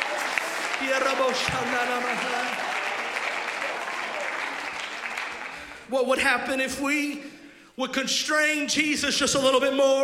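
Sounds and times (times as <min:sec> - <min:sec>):
scattered voices and cheers: 0:00.0 - 0:04.7
audience clapping hands: 0:00.0 - 0:05.9
speech: 0:00.8 - 0:02.7, 0:05.9 - 0:10.0.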